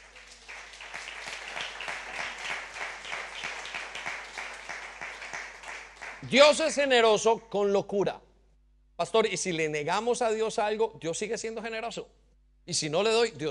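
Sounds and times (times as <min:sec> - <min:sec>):
audience applause: 0:00.0 - 0:06.3
speech: 0:06.2 - 0:08.3, 0:09.0 - 0:13.5.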